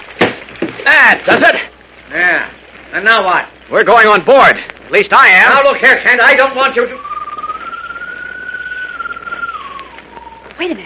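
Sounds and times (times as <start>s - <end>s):
soft hissing background: 0.0s - 10.8s
speech: 0.9s - 7.1s
whistle like a bird's call: 6.6s - 10.8s.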